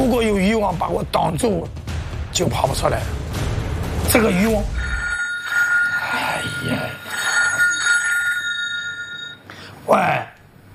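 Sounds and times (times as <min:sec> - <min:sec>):
speech: 0:00.6 - 0:03.3, 0:04.0 - 0:04.8, 0:09.9 - 0:10.3
telephone ringing with a distress call: 0:04.8 - 0:09.4.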